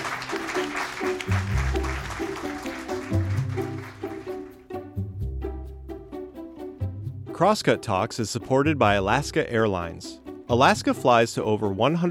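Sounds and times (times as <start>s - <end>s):
audience applause: 0.0s - 4.6s
upbeat music with punchy beats: 0.0s - 12.0s
speech: 7.4s - 12.0s.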